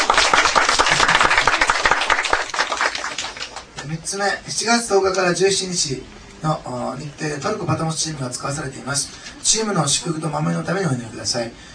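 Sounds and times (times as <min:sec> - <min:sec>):
church congregation applauding new members and a baptism: 0:00.0 - 0:03.8
speech: 0:03.9 - 0:11.7.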